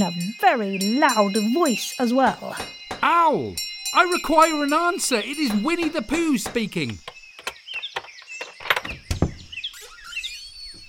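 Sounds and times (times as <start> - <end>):
speech: 0.0 - 7.1
birds chirping: 0.0 - 10.8
door knocker banging: 2.6 - 3.3, 3.9 - 9.6.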